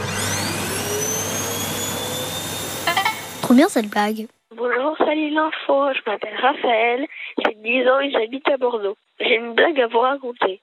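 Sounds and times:
vacuum cleaner running: 0.0s - 4.0s
speech: 3.5s - 10.6s.

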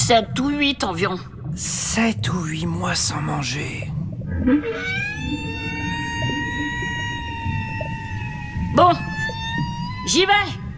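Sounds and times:
speech: 0.1s - 5.5s, 8.8s - 9.2s, 10.1s - 10.6s
whale vocalization: 4.3s - 10.7s.

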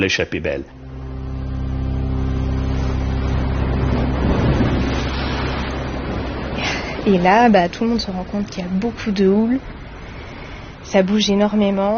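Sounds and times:
speech: 0.0s - 0.8s, 7.1s - 9.8s, 10.9s - 11.9s
motorboat engine droning as boat speeds away: 0.0s - 11.9s
rushing water wash: 2.4s - 11.9s.

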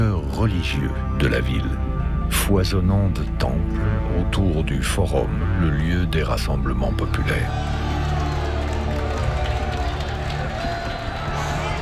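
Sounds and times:
speech: 0.4s - 1.9s, 2.5s - 7.9s
large festive crowd roaring: 7.5s - 11.7s.

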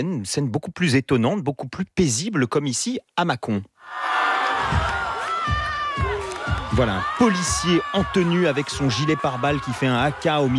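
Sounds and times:
speech: 0.0s - 4.9s, 6.8s - 10.5s
large crowd of high school students cheering and shouting: 3.8s - 10.5s
clapping: 4.7s - 6.7s.

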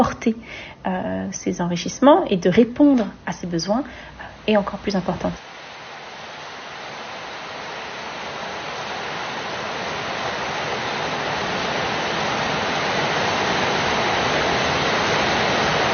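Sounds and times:
speech: 0.0s - 5.5s
heavy rain pouring: 4.4s - 15.9s.

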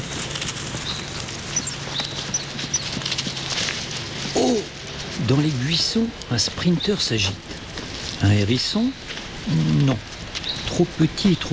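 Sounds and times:
faint bird chirps: 0.0s - 3.0s
footsteps on dry forest leaves: 0.0s - 11.5s
speech: 5.3s - 7.5s, 8.2s - 10.1s, 10.8s - 11.5s.

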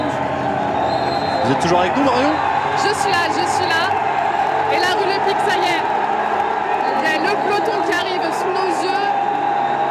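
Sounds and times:
street crowd roaring and cheering: 0.0s - 9.8s
speech: 1.4s - 4.0s, 4.7s - 5.9s.

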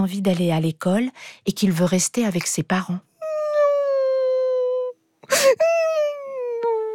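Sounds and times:
speech: 0.0s - 3.1s
character crying and wailing: 3.3s - 6.9s.

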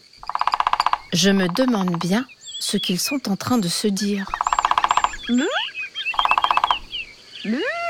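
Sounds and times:
woodpecker drumming: 0.0s - 2.9s, 4.0s - 5.5s, 6.2s - 7.1s
speech: 1.1s - 4.4s, 5.3s - 5.6s, 7.4s - 7.8s.

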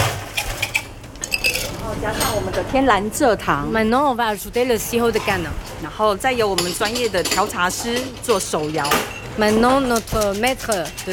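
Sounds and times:
low hum: 0.0s - 11.1s
ice cubes dropping into a glass: 0.4s - 1.8s
speech: 2.0s - 11.1s.

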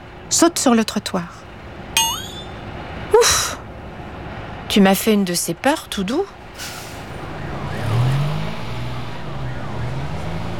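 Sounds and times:
busy city traffic: 0.0s - 10.5s
speech: 0.3s - 1.4s, 4.7s - 6.8s
vehicle engines rumbling and revving: 7.2s - 10.5s.

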